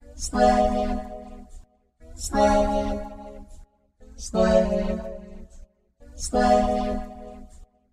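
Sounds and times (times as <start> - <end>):
remix music: 0.0 - 3.5, 4.3 - 5.4, 6.2 - 7.5.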